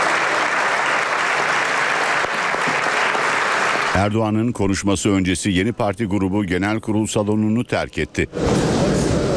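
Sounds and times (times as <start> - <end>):
lawmakers' standing applause in parliament: 0.0 - 4.2
speech: 4.0 - 8.7.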